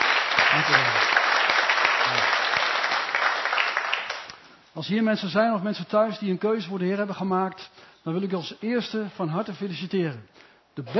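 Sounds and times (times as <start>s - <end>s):
audience applause: 0.0s - 4.3s
speech: 0.6s - 1.1s, 4.8s - 10.9s.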